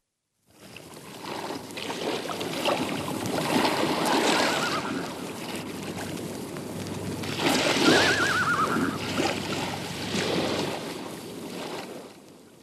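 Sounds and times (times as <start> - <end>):
steady surf washing in repeated swells: 0.6 - 12.6
horse neighing: 8.0 - 9.0.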